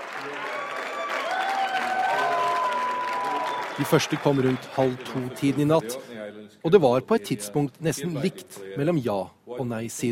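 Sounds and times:
large crowd cheering wildly: 0.0 - 5.8
sustained applause: 0.0 - 6.0
shouts and whoops: 0.3 - 3.8
speech: 3.8 - 10.1.

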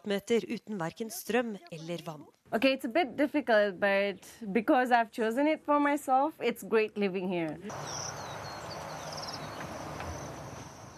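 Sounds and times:
speech: 0.0 - 8.3
birdsong in a village: 7.7 - 10.9.

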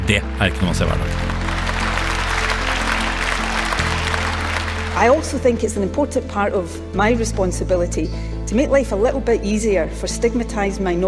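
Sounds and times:
applause in parliament chamber: 0.0 - 5.6
speech: 0.1 - 1.3, 5.0 - 11.0.

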